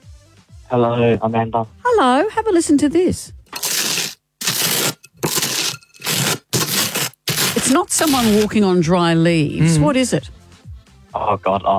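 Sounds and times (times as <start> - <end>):
speech: 0.7 - 3.4, 8.0 - 10.4, 11.1 - 11.7
knife spreading butter on toast: 3.6 - 8.5.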